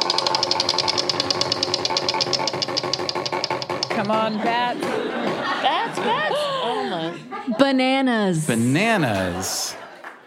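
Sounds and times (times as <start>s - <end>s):
game show prize wheel spinning and clicking: 0.0s - 4.3s
laughter: 4.0s - 7.7s, 8.8s - 10.2s
speech: 4.0s - 9.8s.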